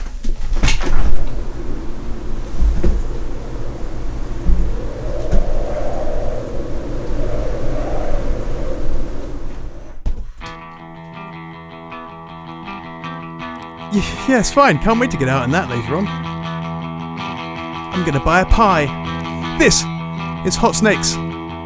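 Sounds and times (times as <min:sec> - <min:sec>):
storm wind through an opened window: 0:00.0 - 0:10.1
speech: 0:14.0 - 0:16.3, 0:18.0 - 0:21.2.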